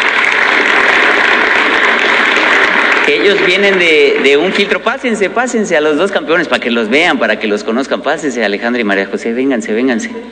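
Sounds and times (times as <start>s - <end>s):
applause: 0.0s - 5.1s
speech: 3.1s - 10.3s.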